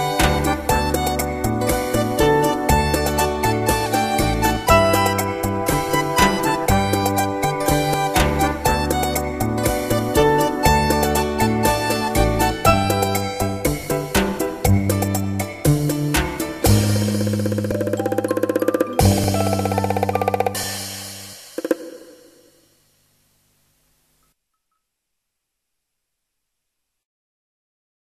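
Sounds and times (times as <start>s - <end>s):
song melody: 0.0s - 21.7s.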